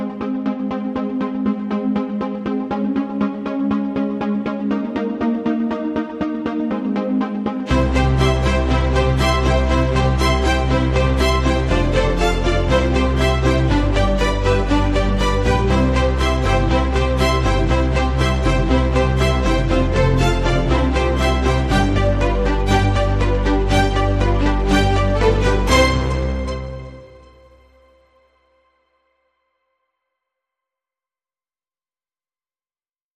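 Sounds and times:
synths: 0.0 - 27.9
strings: 7.6 - 28.0.

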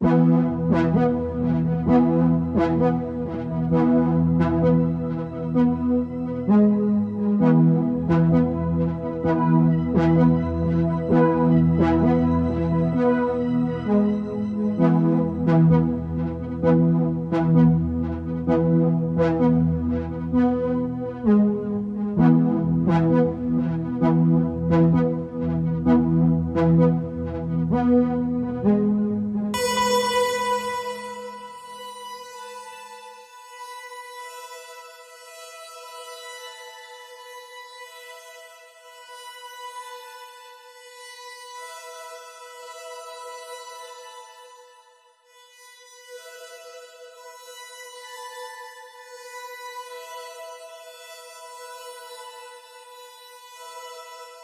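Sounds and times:
Hyproskope pad: 0.0 - 33.0.

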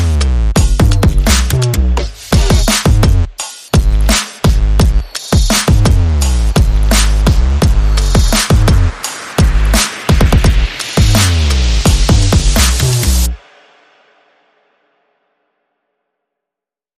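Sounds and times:
bass: 0.0 - 13.4
percussion: 0.0 - 15.6.

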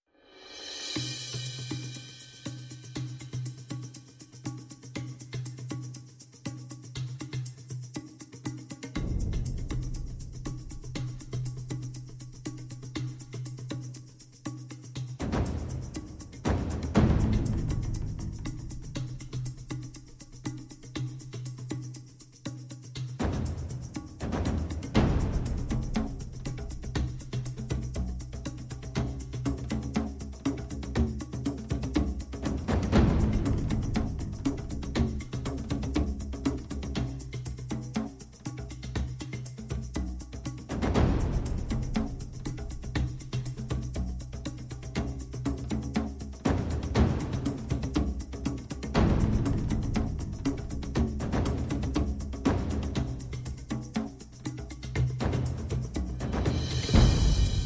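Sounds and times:
percussion: 0.0 - 57.6.

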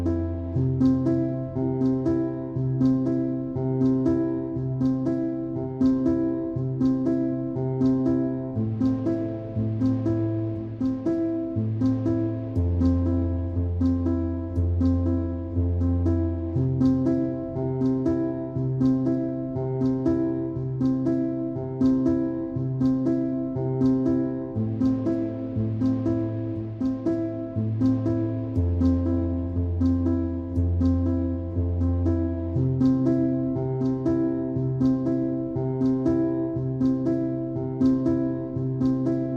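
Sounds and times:
low piano: 0.0 - 39.3.

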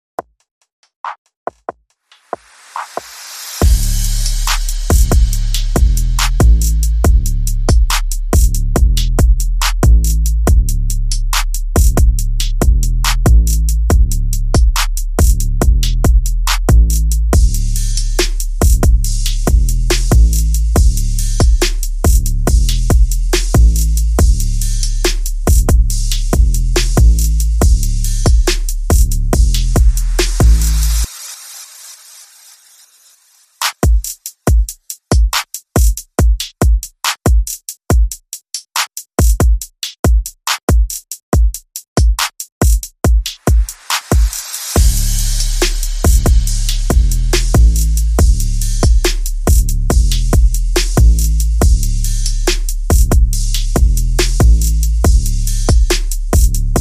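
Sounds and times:
drums: 1.0 - 32.6, 33.5 - 56.7
bass: 3.6 - 31.1, 44.8 - 56.7.

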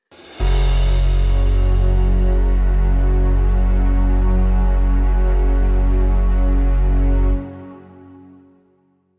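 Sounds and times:
short musical sting: 0.4 - 7.5.

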